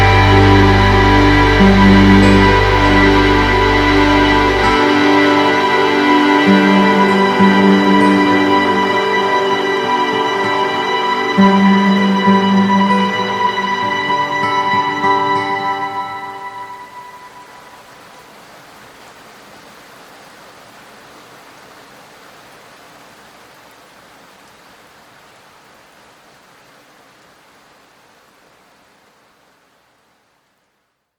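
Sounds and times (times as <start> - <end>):
instrumental music: 0.0 - 17.6.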